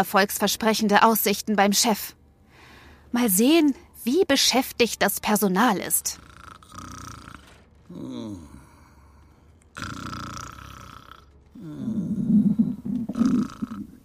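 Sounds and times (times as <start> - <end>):
speech: 0.0 - 2.2, 3.1 - 6.3, 7.9 - 8.5, 11.6 - 12.2
stomach growling: 6.2 - 14.0.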